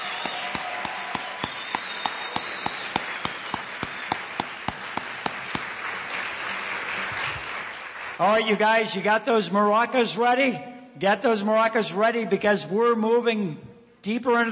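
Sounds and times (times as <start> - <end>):
audience applause: 0.0 - 8.4
speech: 8.2 - 14.4.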